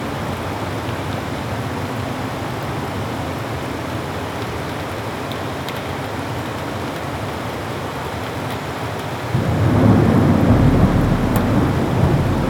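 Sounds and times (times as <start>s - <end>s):
rainstorm: 0.0s - 12.4s
ocean ambience: 9.3s - 12.4s.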